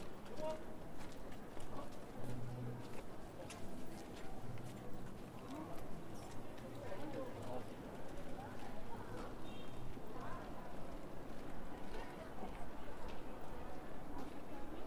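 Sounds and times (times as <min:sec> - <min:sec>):
scattered footsteps: 0:00.0 - 0:09.9
crowd chatter on Zhongjie pedestrian street in Shenyang: 0:00.0 - 0:14.8.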